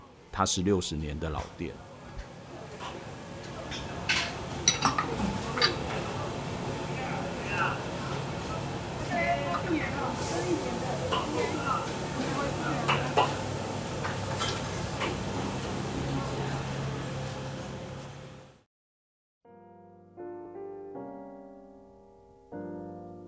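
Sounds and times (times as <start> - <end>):
old market noodle stall ambience: 0.0 - 18.6
speech: 0.4 - 1.9
dishes clattering at noodle stall in Minxiong old market: 1.4 - 18.0.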